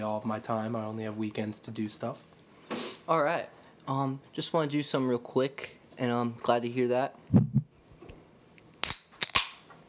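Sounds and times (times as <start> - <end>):
speech: 0.0 - 2.4, 3.1 - 7.5
beer can cracking open: 8.8 - 9.6.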